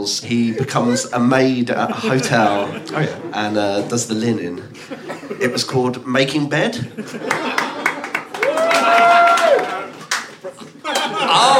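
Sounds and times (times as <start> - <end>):
speech: 0.0 - 7.6
laughter: 1.7 - 3.9, 4.7 - 5.6, 6.8 - 9.2, 10.3 - 11.5
one person applauding alone: 7.3 - 11.2.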